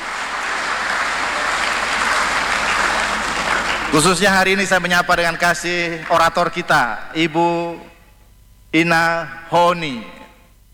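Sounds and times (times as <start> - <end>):
crowd clapping for invited guests at a YKN Kupang event: 0.0 - 6.5
speech: 3.9 - 7.9, 8.7 - 10.2.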